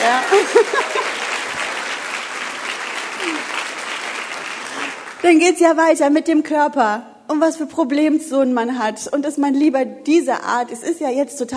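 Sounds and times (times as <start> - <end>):
laughter: 0.0 - 5.0
audience applause: 0.0 - 5.3
speech: 0.4 - 1.0, 5.2 - 11.5.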